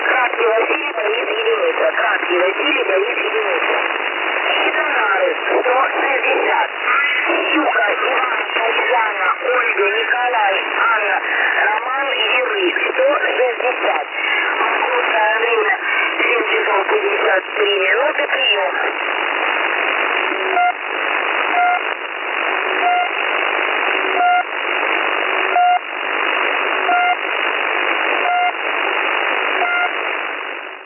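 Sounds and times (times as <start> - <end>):
radio pip message on 3756 kHz: 0.0 - 30.8.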